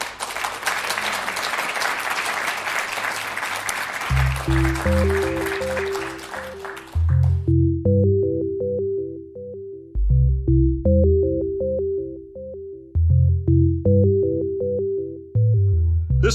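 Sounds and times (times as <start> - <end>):
audience applause: 0.0 - 7.4
low stepping musical tune: 4.1 - 16.3.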